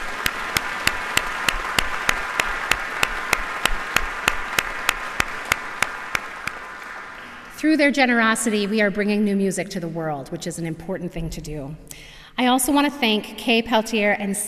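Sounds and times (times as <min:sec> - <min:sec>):
audience applause: 0:00.0 - 0:07.6
speech: 0:07.6 - 0:14.4.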